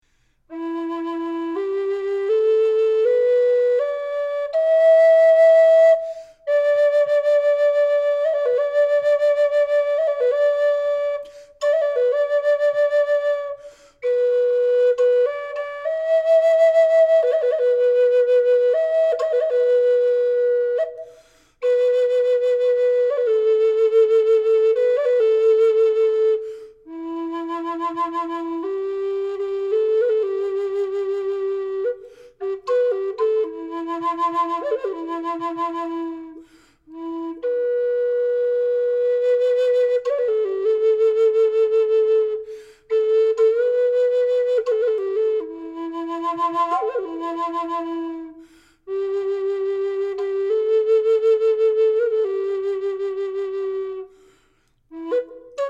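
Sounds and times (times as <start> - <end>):
flute with reverb: 0.5 - 55.6.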